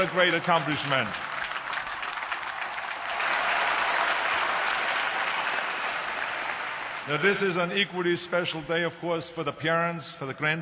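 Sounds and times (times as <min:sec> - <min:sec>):
speech: 0:00.0 - 0:01.3, 0:07.1 - 0:10.6
audience applause for graduates: 0:00.0 - 0:07.7.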